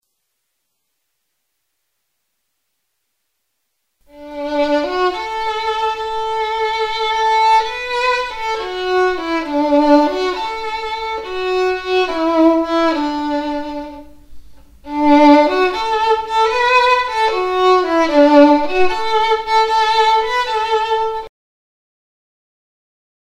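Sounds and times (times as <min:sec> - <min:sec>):
violin: 0:04.0 - 0:21.3.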